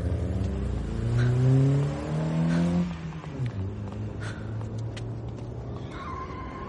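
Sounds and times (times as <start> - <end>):
taxi engine revving hard while accelerating in a chase: 0.0 - 4.6.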